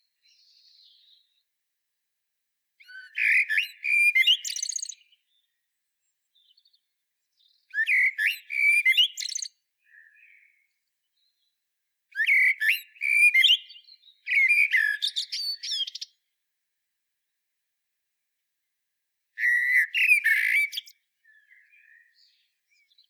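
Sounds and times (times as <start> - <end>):
common blackbird fluted warbling song: 2.8 - 5.6, 7.4 - 11.5, 12.2 - 16.2, 19.4 - 23.0.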